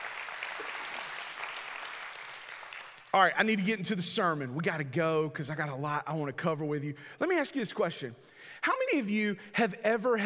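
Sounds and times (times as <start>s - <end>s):
audience clapping: 0.0s - 3.4s
speech: 3.1s - 10.2s.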